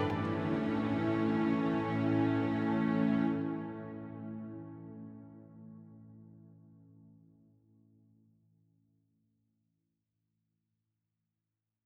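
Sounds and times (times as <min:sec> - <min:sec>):
instrumental music: 0:00.0 - 0:06.2.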